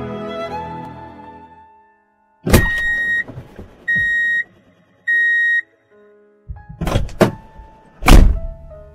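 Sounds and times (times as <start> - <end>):
car door slamming shut hard: 2.5 - 4.2, 6.7 - 7.5, 8.0 - 8.6
car door opening: 2.5 - 4.5, 6.5 - 8.7.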